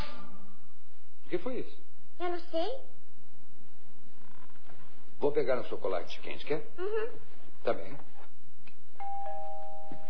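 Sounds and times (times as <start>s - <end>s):
speech: 1.3s - 3.0s, 5.2s - 8.1s
two-note doorbell chime: 9.0s - 10.0s.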